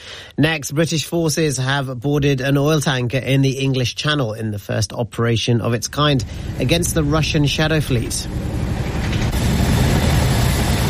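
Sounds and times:
speech: 0:00.4 - 0:08.6
hovering helicopter rotor roar: 0:05.8 - 0:10.8.

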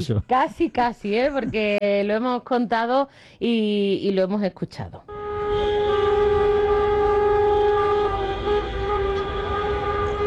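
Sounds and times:
speech: 0:00.0 - 0:05.1
car horns honking in protest: 0:05.1 - 0:10.2.

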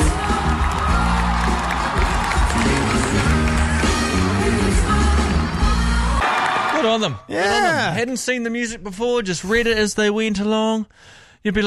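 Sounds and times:
large crowd clapping in a standing ovation: 0:00.0 - 0:07.2
speech: 0:06.9 - 0:11.6.

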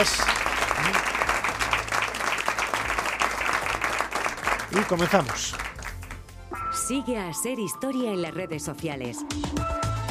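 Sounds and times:
speech: 0:00.0 - 0:01.0, 0:04.7 - 0:05.7, 0:06.8 - 0:09.8
audience applause: 0:00.0 - 0:06.2.

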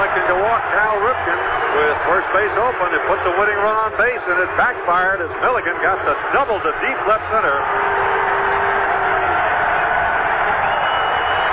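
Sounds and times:
baseball stadium crowd cheering: 0:00.0 - 0:11.5
speech: 0:00.2 - 0:08.3.

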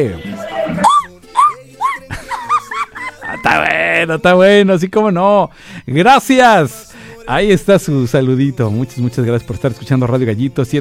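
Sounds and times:
speech: 0:00.0 - 0:00.9, 0:03.6 - 0:10.7
festive Mexican grito: 0:00.2 - 0:02.1
laughter: 0:00.2 - 0:04.0.

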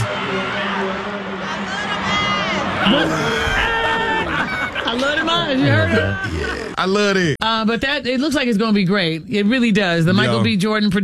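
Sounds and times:
audience cheering and screaming as actor Michael Ealy is announced: 0:00.0 - 0:06.4
laughter: 0:02.6 - 0:07.2, 0:10.1 - 0:10.5
speech: 0:02.8 - 0:03.5, 0:04.9 - 0:11.0.

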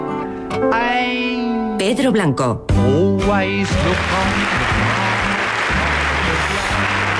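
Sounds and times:
speech: 0:00.6 - 0:04.7
applause sound effect from a button: 0:03.6 - 0:07.1.

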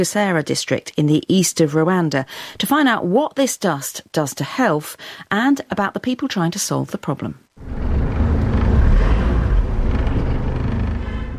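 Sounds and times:
speech: 0:00.0 - 0:07.9
car driving east from Kigali into Bugesera district, Rwanda: 0:07.6 - 0:11.3.

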